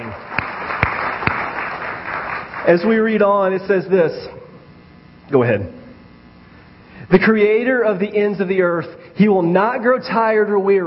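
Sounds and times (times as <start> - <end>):
audience hand clapping: 0.0 - 3.3
speech: 2.7 - 4.4, 5.3 - 5.8, 7.1 - 10.8.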